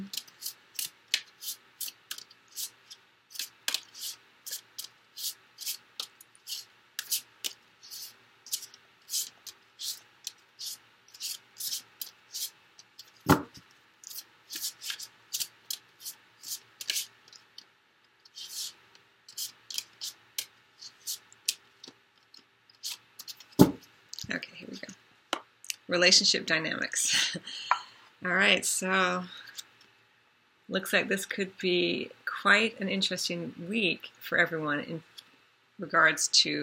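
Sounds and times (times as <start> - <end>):
tarot cards shuffled and drawn for a reading: 0.0 - 17.7, 18.3 - 24.3
speech: 26.0 - 29.4, 30.7 - 35.1, 35.8 - 36.6.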